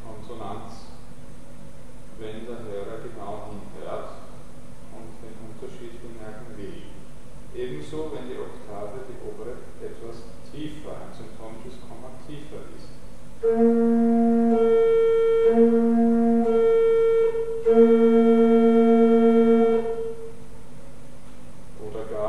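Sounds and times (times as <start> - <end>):
various octaves: 13.4 - 20.5.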